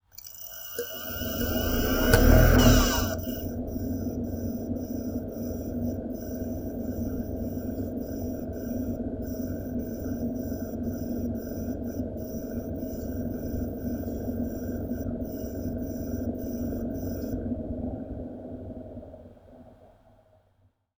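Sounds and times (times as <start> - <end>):
internal DVD drive spinning up: 0.1 - 18.3.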